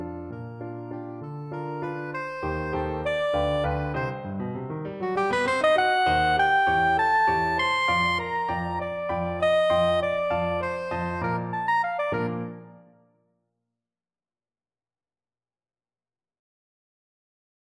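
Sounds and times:
soprano saxophone playing a waltz: 1.6s - 4.2s, 5.0s - 12.7s.

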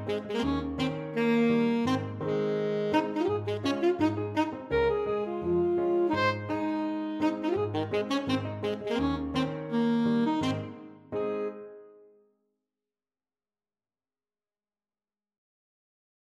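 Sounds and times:
alto saxophone playing a Hungarian dance: 0.0s - 11.8s.

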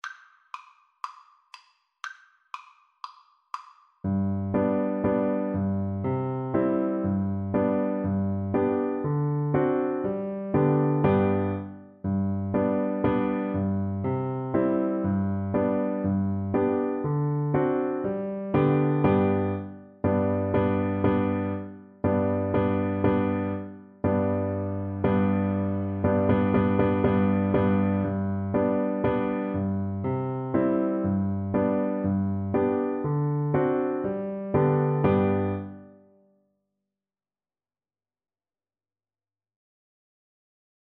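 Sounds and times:
piano duet: 4.0s - 36.2s.

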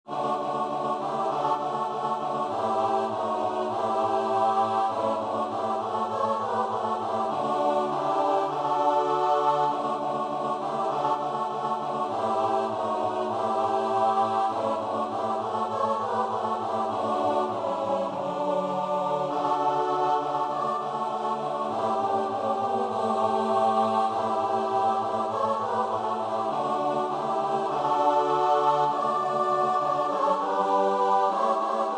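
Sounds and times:
choir singing: 0.0s - 31.9s.

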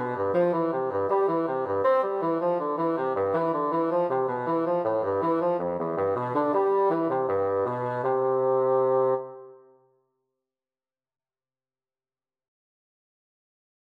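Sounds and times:
bassoon bourree: 0.0s - 9.7s.

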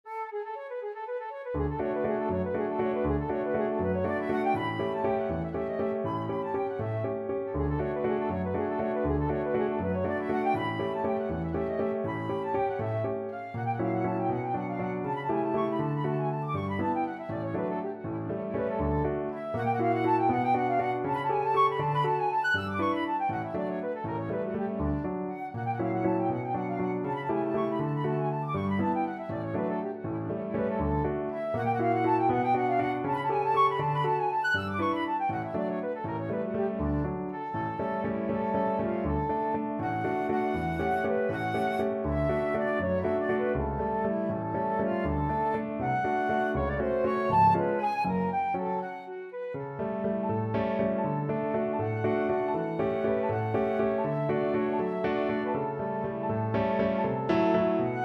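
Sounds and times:
flute piece: 0.0s - 58.0s.

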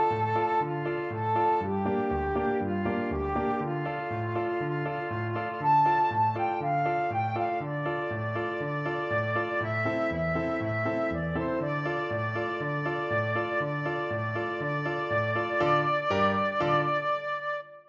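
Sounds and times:
flute melody: 0.0s - 17.8s.

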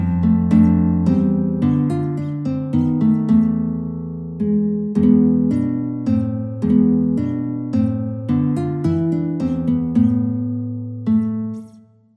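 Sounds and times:
guitar aria: 0.0s - 12.1s.

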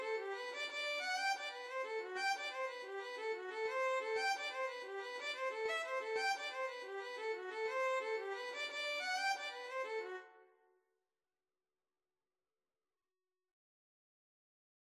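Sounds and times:
rolling jig on violin: 0.0s - 10.2s.

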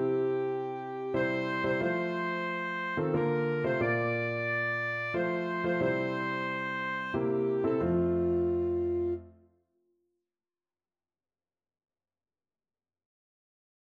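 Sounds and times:
alto saxophone: 0.0s - 9.4s.

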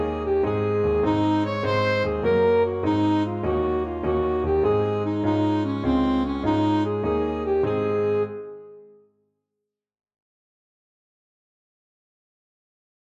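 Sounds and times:
saxophone playing a jig: 0.0s - 8.8s.

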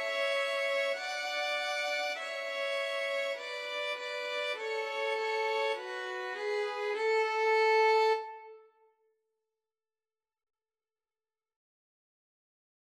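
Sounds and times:
violin duet of a nursery rhyme: 0.0s - 8.7s.

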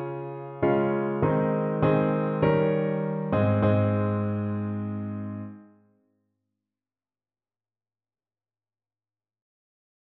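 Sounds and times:
piano piece: 0.0s - 5.8s.

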